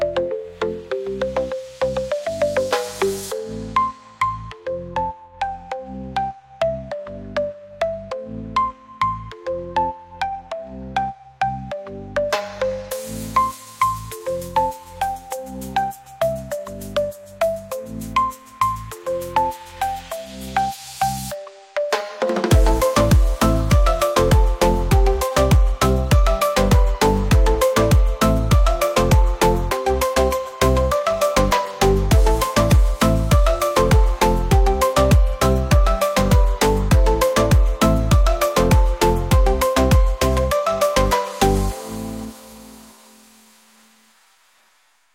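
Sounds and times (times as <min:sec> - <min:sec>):
groove music: 0:00.0 - 0:09.5, 0:10.2 - 0:44.2.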